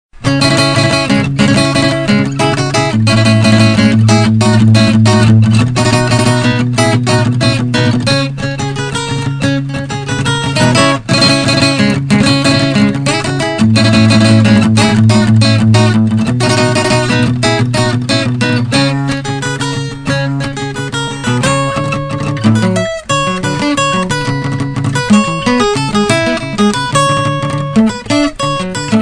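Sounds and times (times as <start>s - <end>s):
acoustic music: 0.2s - 29.0s.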